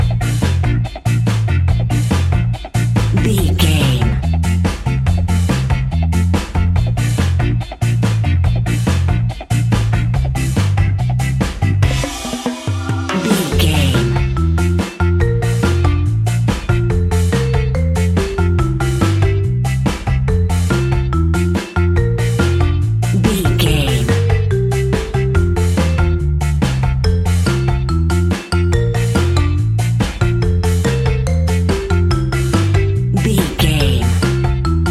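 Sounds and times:
Caribbean ska reggae music: 0.0 - 34.8.

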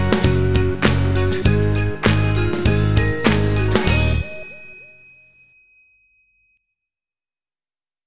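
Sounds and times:
indie pop music: 0.0 - 5.0.

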